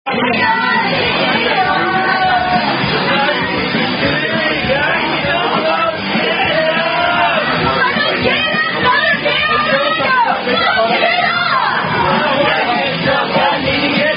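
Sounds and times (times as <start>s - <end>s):
group singing along to a drinking song: 0.1s - 14.1s.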